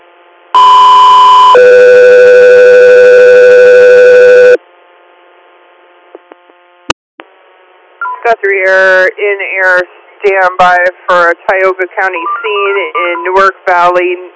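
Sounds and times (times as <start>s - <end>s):
faint hum: 0.0s - 14.3s
two-tone radio dispatch alert tone: 8.0s - 8.4s, 12.0s - 13.6s
speech: 8.5s - 14.3s.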